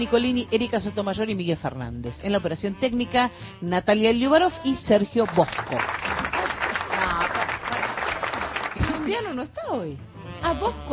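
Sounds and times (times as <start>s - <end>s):
speech: 0.0s - 6.3s, 9.1s - 10.9s
group applause: 5.2s - 9.4s.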